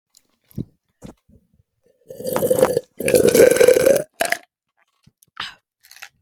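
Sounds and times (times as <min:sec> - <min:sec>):
mysterious food sounds: 0:02.1 - 0:04.4.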